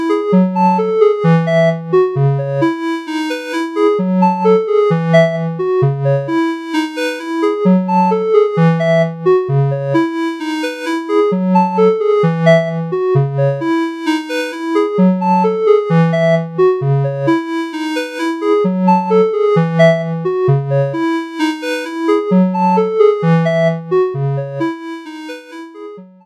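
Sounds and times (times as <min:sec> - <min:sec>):
Modal Argon8 synthesizer: 0:00.0 - 0:26.2.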